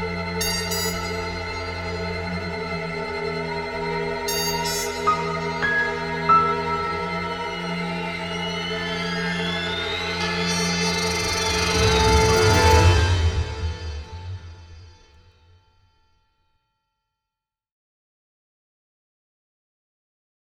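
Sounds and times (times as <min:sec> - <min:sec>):
background music: 0:00.0 - 0:15.6.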